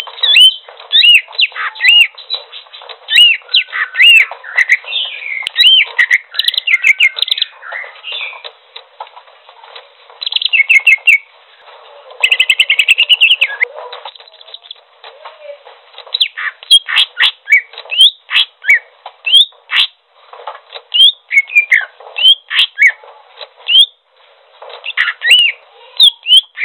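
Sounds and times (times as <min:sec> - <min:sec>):
bird singing trills: 0:00.0 - 0:08.5, 0:10.2 - 0:11.3, 0:12.2 - 0:14.8, 0:16.1 - 0:20.0, 0:20.9 - 0:23.0, 0:24.8 - 0:26.6.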